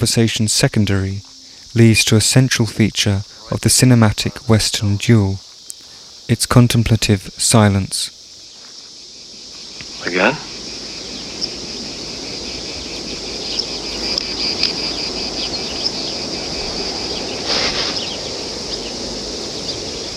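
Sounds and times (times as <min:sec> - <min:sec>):
speech: 0:00.0 - 0:05.4, 0:06.3 - 0:08.2, 0:10.0 - 0:10.5
cicadas buzzing: 0:00.0 - 0:20.1.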